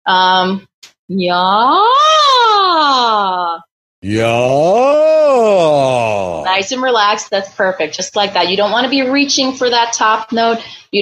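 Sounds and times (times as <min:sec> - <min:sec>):
speech: 0:00.1 - 0:11.0
voice performing vocal siren glides: 0:04.0 - 0:06.5.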